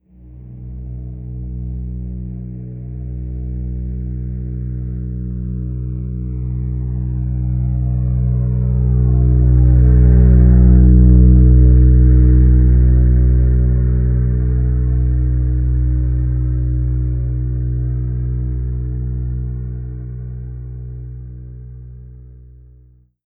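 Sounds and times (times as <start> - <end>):
cargo plane: 0.1 - 22.6.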